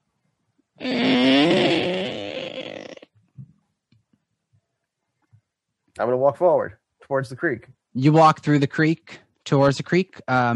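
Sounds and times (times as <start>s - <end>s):
voice imitating a door creaking open: 0.8s - 3.1s
speech: 6.0s - 10.5s.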